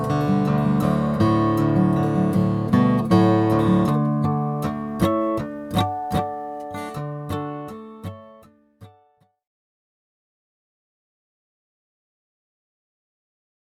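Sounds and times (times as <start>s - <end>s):
graphite guitar: 0.0s - 9.3s.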